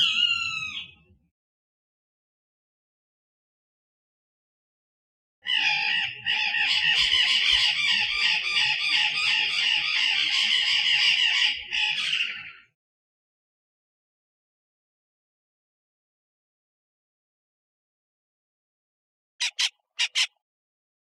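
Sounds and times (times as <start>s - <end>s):
birds in Costa Rica: 0.0s - 1.2s, 5.4s - 12.8s, 19.4s - 20.4s.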